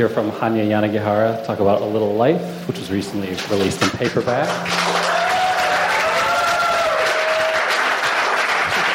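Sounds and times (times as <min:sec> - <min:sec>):
speech: 0:00.0 - 0:05.0
room full of people applauding: 0:04.2 - 0:08.9
faint whistles or cheers: 0:04.9 - 0:08.3.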